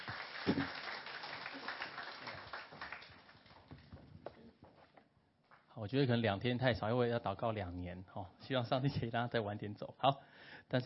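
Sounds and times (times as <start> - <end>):
audience applause: 0.0 - 3.8
speech: 5.9 - 10.8.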